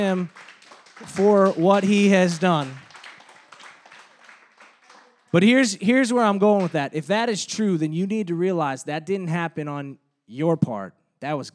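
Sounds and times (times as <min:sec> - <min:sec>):
speech: 0:00.0 - 0:02.8, 0:05.3 - 0:11.5
crowd of people clapping hands: 0:00.0 - 0:06.9.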